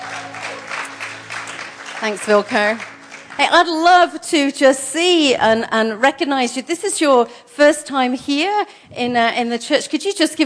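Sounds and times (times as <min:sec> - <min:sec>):
crowd applauding the band: 0:00.0 - 0:03.8
speech: 0:02.0 - 0:10.4.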